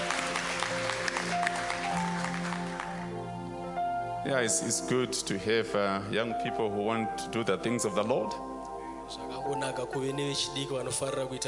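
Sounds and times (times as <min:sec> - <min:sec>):
audience clapping hands: 0:00.0 - 0:03.3
speech: 0:04.3 - 0:08.5, 0:09.1 - 0:11.4.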